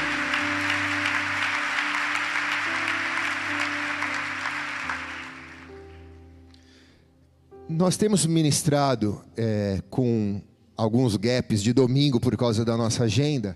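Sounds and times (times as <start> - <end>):
loud dense crowd applause: 0.0 - 6.0
sustained low musical tones: 0.0 - 10.7
speech: 7.7 - 13.5.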